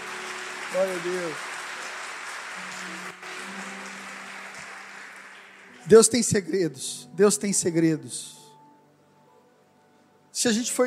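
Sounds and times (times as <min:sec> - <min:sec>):
audience applauding: 0:00.0 - 0:06.4
speech: 0:00.7 - 0:01.5, 0:02.6 - 0:03.7, 0:05.8 - 0:08.4, 0:10.4 - 0:10.8.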